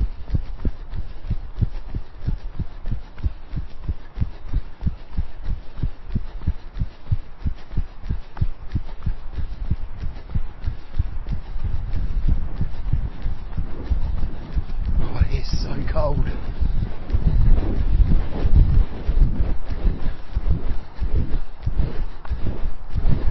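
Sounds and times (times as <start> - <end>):
wind buffeting the microphone on an outdoor grass running track: 0.0 - 23.2
voice: 15.0 - 16.4.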